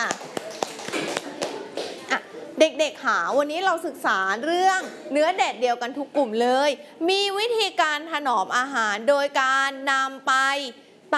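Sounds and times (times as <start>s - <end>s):
children clapping in a classroom: 0.0s - 2.0s
speech: 2.8s - 11.1s.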